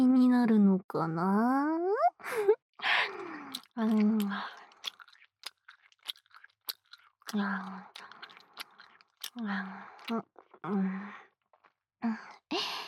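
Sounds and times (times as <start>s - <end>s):
speech: 0.4s - 2.5s, 3.8s - 4.6s, 7.3s - 8.1s, 9.4s - 11.2s, 12.0s - 12.8s
wet sticky gum chewing: 3.0s - 11.8s.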